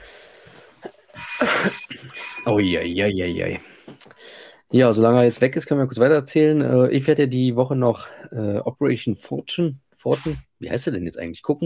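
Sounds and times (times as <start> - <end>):
doorbell ringing: 1.2 - 3.5
speech: 1.4 - 3.8, 4.7 - 11.6.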